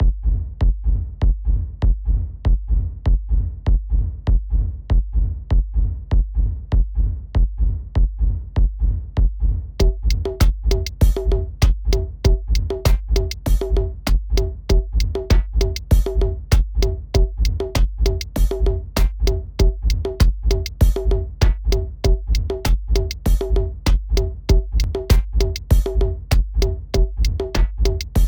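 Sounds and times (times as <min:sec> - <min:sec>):
raw kick drum: 0:00.0 - 0:28.2.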